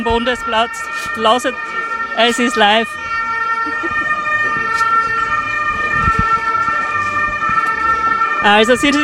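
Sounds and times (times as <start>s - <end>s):
speech: 0.0s - 3.0s, 3.6s - 4.0s, 8.4s - 9.0s
ambulance siren passing by: 0.0s - 9.0s
laughter: 3.2s - 6.0s.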